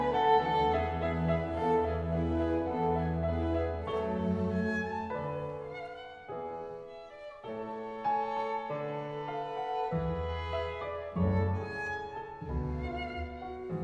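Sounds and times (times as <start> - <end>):
fortepiano: 0.0 - 13.8
orchestra playing an adagio: 0.0 - 13.8
violin: 0.0 - 13.8.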